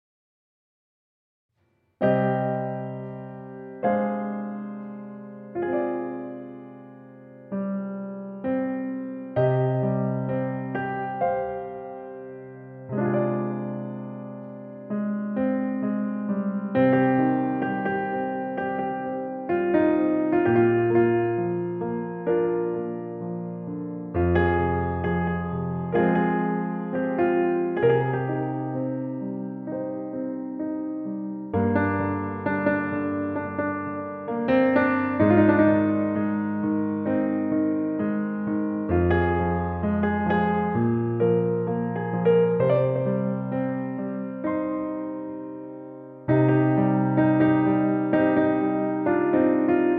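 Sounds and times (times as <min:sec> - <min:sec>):
piano: 0:01.6 - 0:49.9.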